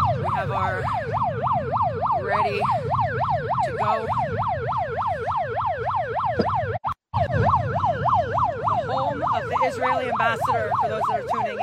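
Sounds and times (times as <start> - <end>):
protest sound machines blaring siren noise: 0.0 - 11.6
speech: 0.4 - 1.2, 2.3 - 3.0, 3.7 - 4.5, 9.8 - 11.6.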